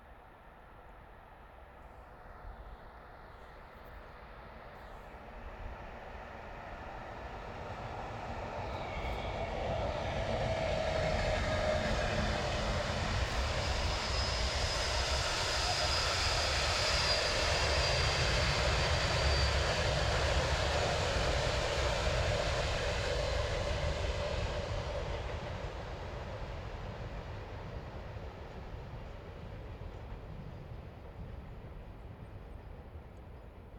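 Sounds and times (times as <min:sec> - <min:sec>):
freight train with open wagons rolling past: 0:02.2 - 0:33.7
faint squeal of freight train: 0:07.6 - 0:24.5.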